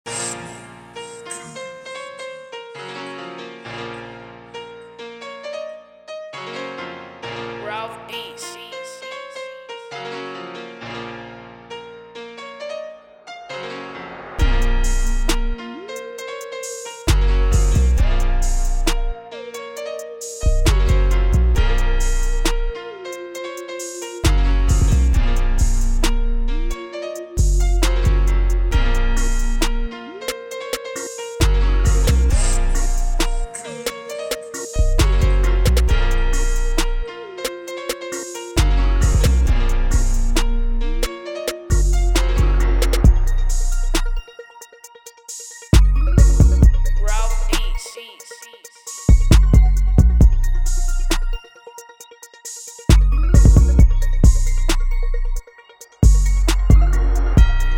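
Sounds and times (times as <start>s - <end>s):
instrumental music: 0.1s - 57.7s.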